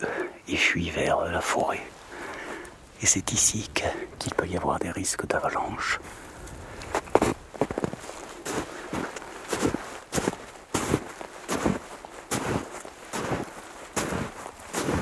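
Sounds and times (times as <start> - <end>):
speech: 0.0 - 2.0, 3.0 - 6.3
soft hiss: 0.0 - 14.9
footsteps trudging up a mountain slope: 6.4 - 14.9.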